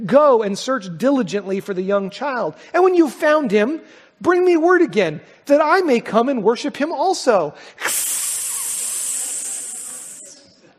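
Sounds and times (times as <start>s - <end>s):
speech: 0.0s - 8.3s
voice making a long sustained hissing sound: 7.8s - 10.5s.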